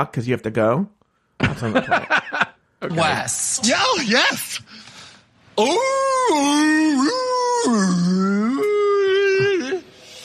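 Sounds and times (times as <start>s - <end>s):
speech: 0.0s - 4.8s, 5.6s - 8.4s
laughter: 1.4s - 2.6s
voice imitating whale call: 5.6s - 9.9s.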